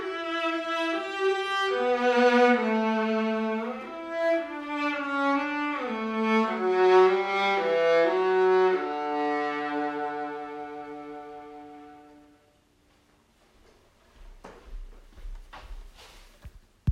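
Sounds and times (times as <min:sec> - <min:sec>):
viola: 0:00.0 - 0:12.6.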